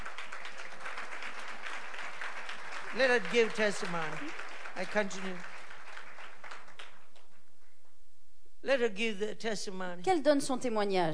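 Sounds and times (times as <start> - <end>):
audience applause: 0.0 - 7.4
speech: 2.9 - 5.5, 8.6 - 11.1.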